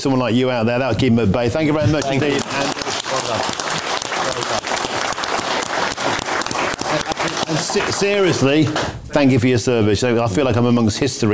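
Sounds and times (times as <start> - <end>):
speech: 0.0 - 4.9, 7.5 - 11.3
audience applause: 1.9 - 9.0.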